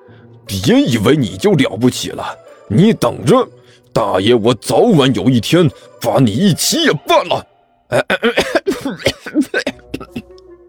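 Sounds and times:
speech: 0.5s - 9.4s
rapid fit of coughing: 7.9s - 10.4s.

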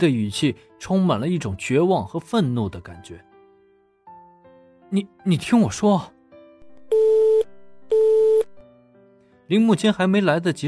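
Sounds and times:
speech: 0.0s - 3.3s, 4.9s - 6.2s, 9.5s - 10.6s
phone tone after call hung up: 6.9s - 8.6s.

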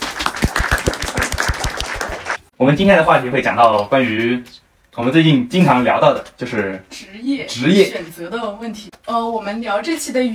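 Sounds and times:
audience applause: 0.0s - 2.5s
speech: 2.6s - 10.3s.

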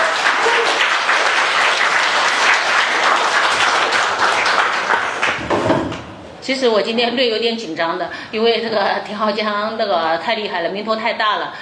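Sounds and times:
audience applauding: 0.0s - 6.1s
speech: 6.5s - 11.5s.

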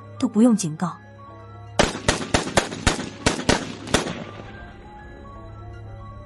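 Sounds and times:
speech: 0.2s - 1.0s
pistol gunfire burst: 1.8s - 4.4s.

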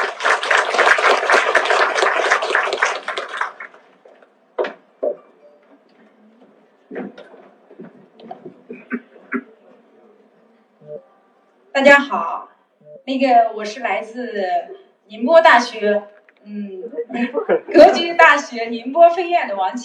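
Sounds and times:
audience applause welcoming speaker: 0.0s - 4.1s
speech: 11.8s - 12.3s, 13.1s - 19.8s.

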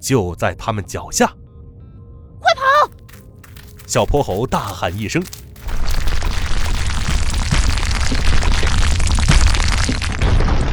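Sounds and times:
speech: 0.0s - 1.4s, 3.9s - 5.9s
earthquake rumble as the ground splits open: 3.0s - 10.7s.

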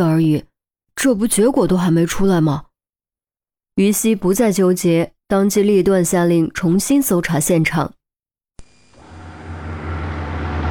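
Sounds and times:
speech: 0.0s - 2.7s, 3.8s - 8.0s
low car engine rumble: 9.0s - 10.6s
police car tires skidding against the road: 9.0s - 10.6s.

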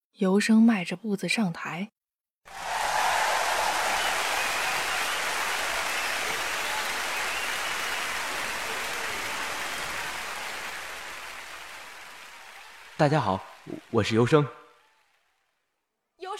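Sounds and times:
speech: 0.2s - 2.6s, 13.0s - 14.6s
audience applause: 2.5s - 15.2s.

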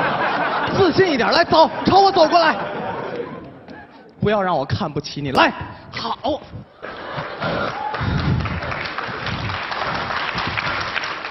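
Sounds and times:
laughter: 0.0s - 4.2s, 6.4s - 11.3s
speech: 0.7s - 2.7s, 4.2s - 6.7s
audience applause: 6.8s - 11.3s.

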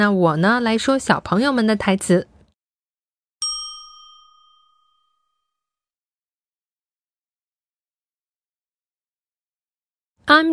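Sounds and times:
speech: 0.0s - 2.3s, 10.3s - 10.5s
bright metallic ding signal cue in a children's English lesson: 3.4s - 5.7s.

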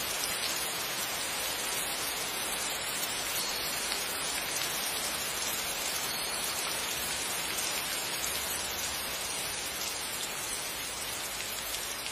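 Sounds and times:
rain falling: 0.0s - 12.1s.

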